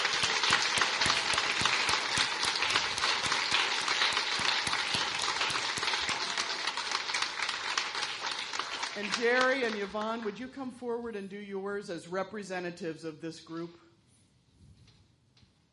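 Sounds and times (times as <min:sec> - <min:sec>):
crowd applause: 0:00.0 - 0:10.0
speech: 0:09.0 - 0:13.8.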